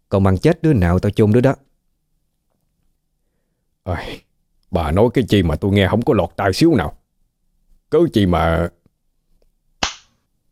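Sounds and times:
speech: 0.1s - 1.7s, 3.9s - 7.0s, 7.9s - 8.8s
hard slap across the face: 9.8s - 10.2s.

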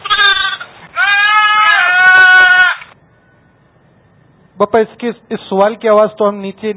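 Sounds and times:
two-legged goat bleating: 0.0s - 2.9s
speech: 4.7s - 6.7s.

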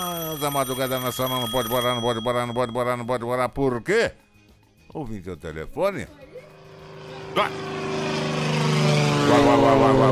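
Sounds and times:
speech: 0.0s - 4.2s, 4.9s - 6.2s, 7.4s - 8.0s, 8.8s - 10.1s
propeller airplane landing: 6.5s - 10.1s.

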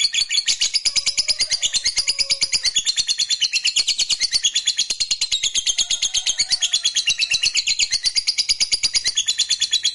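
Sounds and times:
lovebird singing shrill scratchy chirps: 0.0s - 9.9s.

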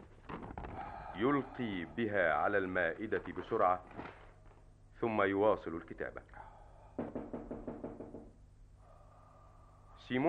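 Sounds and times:
speech: 1.2s - 4.1s, 5.0s - 6.4s, 10.1s - 10.2s
knocking on a door: 7.0s - 8.4s.

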